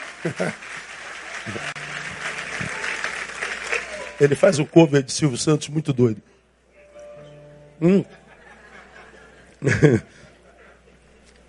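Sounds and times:
audience applause: 0.0s - 4.9s
laughter: 0.2s - 0.7s, 8.0s - 11.1s
speech: 0.2s - 2.1s, 4.2s - 6.4s, 7.8s - 8.2s, 9.6s - 10.3s.

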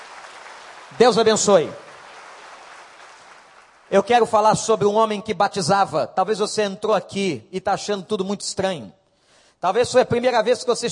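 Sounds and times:
audience applauding: 0.0s - 4.1s
speech: 0.9s - 1.8s, 3.9s - 9.0s, 9.6s - 10.9s.

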